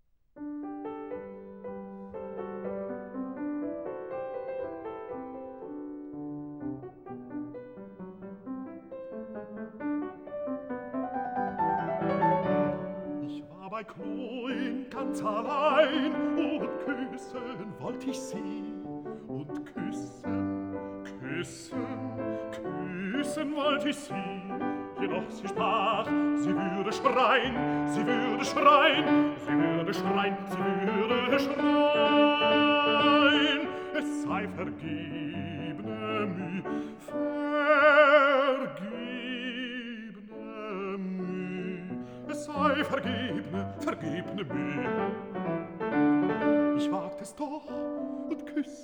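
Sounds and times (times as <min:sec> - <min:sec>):
piano: 0:00.0 - 0:48.8
person singing an arietta: 0:12.6 - 0:45.4, 0:46.7 - 0:48.8.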